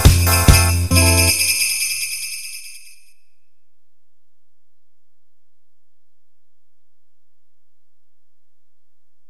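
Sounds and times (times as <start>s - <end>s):
christmas song: 0.0s - 3.3s.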